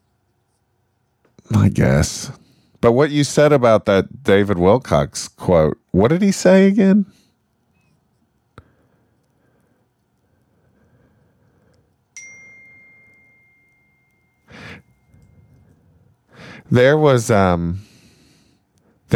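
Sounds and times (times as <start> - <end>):
speech: 1.5 - 7.2, 16.7 - 17.9
phone text-message notification ding: 12.2 - 15.1.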